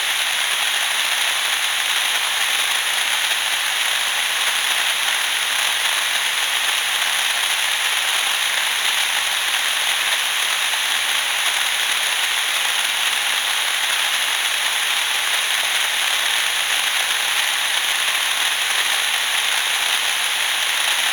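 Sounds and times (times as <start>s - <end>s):
SRF-T610V noise: 0.0s - 21.1s.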